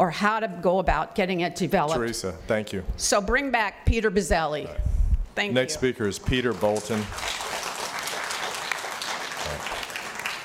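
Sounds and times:
speech: 0:00.0 - 0:07.4
audience applause: 0:06.2 - 0:10.4.

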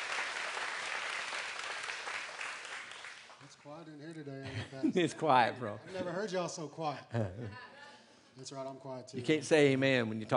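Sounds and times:
audience round of applause: 0:00.0 - 0:03.4
speech: 0:03.6 - 0:07.7, 0:08.4 - 0:10.3.

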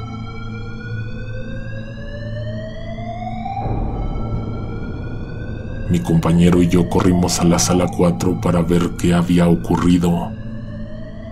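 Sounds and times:
alarm going off: 0:02.0 - 0:11.2
speech: 0:05.9 - 0:10.4.

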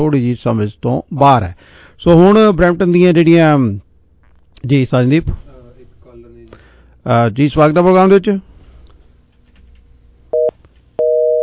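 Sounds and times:
speech: 0:00.0 - 0:03.8, 0:04.6 - 0:05.4, 0:07.0 - 0:08.5
telephone busy tone after a dropped call: 0:10.4 - 0:11.4.

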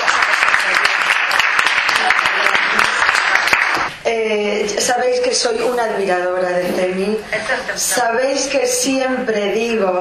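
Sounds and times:
audience applause: 0:00.0 - 0:03.9
speech: 0:04.3 - 0:10.0.

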